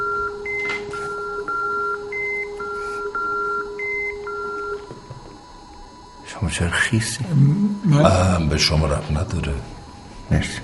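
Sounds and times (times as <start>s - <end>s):
steady electronic phone tone: 0.0s - 5.4s, 7.3s - 8.5s
speech: 6.4s - 10.6s.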